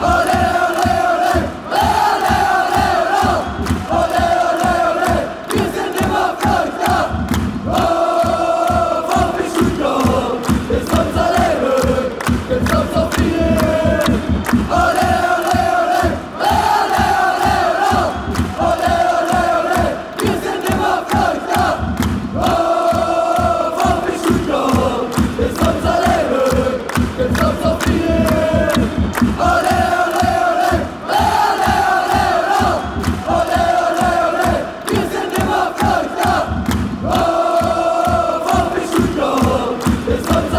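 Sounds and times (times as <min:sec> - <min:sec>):
football fans chanting: 0:00.0 - 0:40.5.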